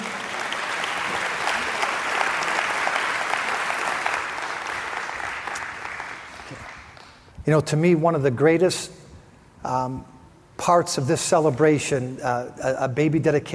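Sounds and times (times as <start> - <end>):
audience applause: 0.0 - 7.0
speech: 7.5 - 9.0, 9.6 - 13.5.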